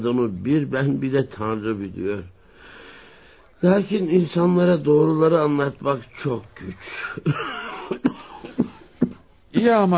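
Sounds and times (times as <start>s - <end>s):
speech: 0.0s - 2.4s, 3.6s - 8.3s, 9.5s - 9.9s
faint hiss: 0.9s - 9.1s
old man coughing: 6.9s - 9.3s.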